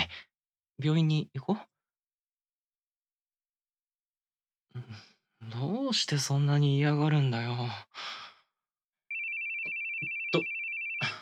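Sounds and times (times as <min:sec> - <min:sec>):
speech: 0:00.8 - 0:01.7, 0:04.8 - 0:08.2, 0:10.3 - 0:10.5
phone ringing: 0:09.1 - 0:11.2.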